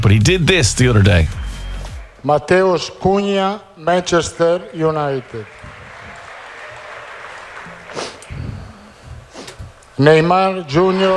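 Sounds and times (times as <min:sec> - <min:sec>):
speech: 0:00.1 - 0:01.4, 0:02.2 - 0:05.6, 0:10.0 - 0:11.1
small room applause: 0:00.5 - 0:02.3, 0:04.2 - 0:09.3, 0:10.7 - 0:11.1.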